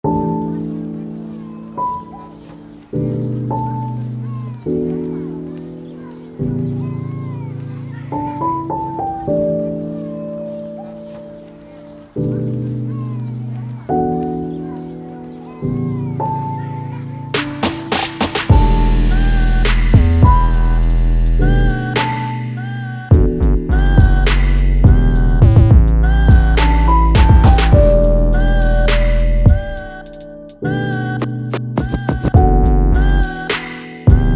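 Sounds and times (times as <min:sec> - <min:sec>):
trapsoul music: 0:00.0 - 0:34.3.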